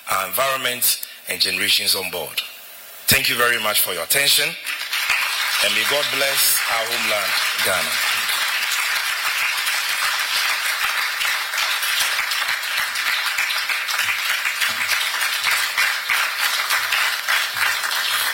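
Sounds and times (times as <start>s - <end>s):
speech: 0.1s - 2.5s, 3.1s - 4.8s, 5.6s - 8.2s
audience applause after a keynote speech: 4.7s - 18.3s.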